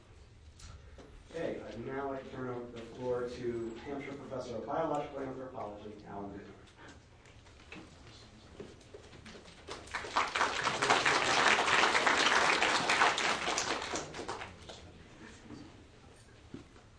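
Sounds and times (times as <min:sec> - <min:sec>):
speech: 0:01.8 - 0:06.7
audience applause: 0:09.6 - 0:14.8.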